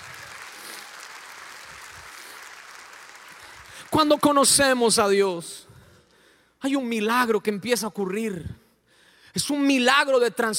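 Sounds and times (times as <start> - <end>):
audience applause: 0.0 - 4.2
speech: 3.9 - 5.6, 6.6 - 8.6, 9.3 - 10.5.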